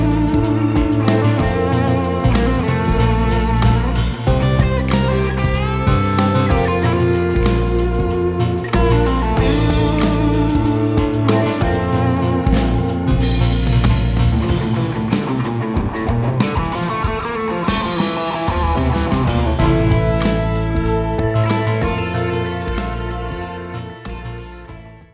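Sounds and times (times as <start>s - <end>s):
solo guitar: 0.0s - 25.0s.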